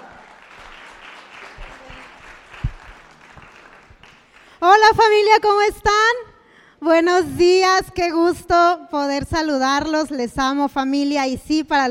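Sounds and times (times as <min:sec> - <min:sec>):
applause: 0:00.0 - 0:04.9
speech: 0:04.6 - 0:06.2, 0:06.8 - 0:11.8.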